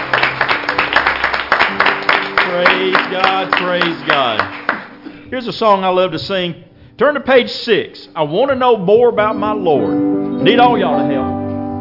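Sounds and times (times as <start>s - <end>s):
congregation clapping hands in praise during a church service: 0.0s - 5.2s
speech: 2.6s - 4.6s, 5.3s - 11.3s.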